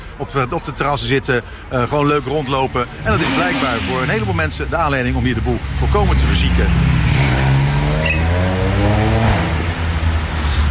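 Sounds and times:
speech: 0.2s - 7.4s
motorcycle engine revving and driving away: 3.0s - 4.5s, 5.1s - 10.2s.

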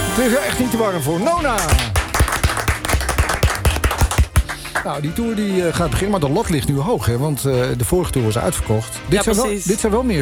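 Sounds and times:
speech: 0.2s - 2.0s, 4.8s - 10.2s
concert audience clapping along to a song: 1.4s - 5.2s
thumping beat: 1.6s - 4.7s.

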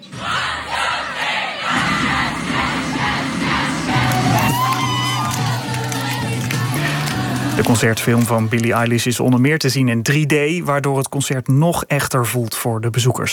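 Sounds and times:
cinema audience screaming at a pop concert film: 0.0s - 7.8s
speech: 7.6s - 13.3s.

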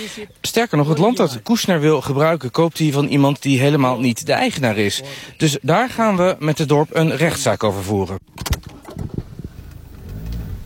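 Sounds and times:
speech: 0.0s - 8.7s
car driving on an unpaved sandy road through a forest: 5.0s - 10.6s.

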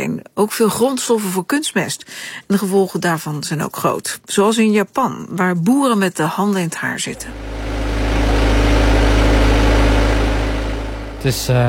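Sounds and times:
speech: 0.1s - 8.3s, 11.2s - 11.6s
potato harvesting machine engine running: 7.1s - 11.6s.

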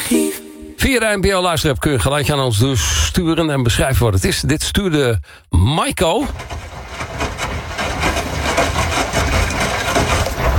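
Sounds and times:
speech: 0.8s - 6.6s
rattling washing machine running: 6.2s - 10.5s.

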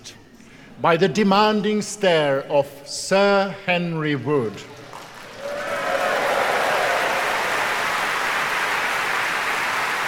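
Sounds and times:
speech: 0.8s - 4.8s
concert audience applause: 4.8s - 10.0s.

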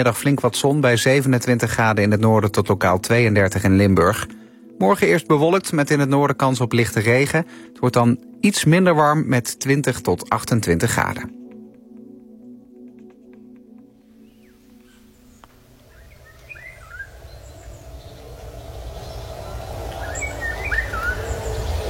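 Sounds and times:
speech: 0.0s - 11.4s
golden orioles calling: 14.2s - 21.8s
low droning hum: 15.6s - 21.8s
steady low rumble: 15.6s - 21.8s.

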